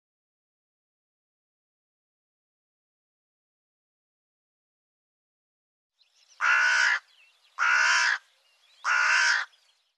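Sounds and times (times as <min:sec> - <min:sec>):
bird harsh buzzy caws: 0:06.4 - 0:09.7.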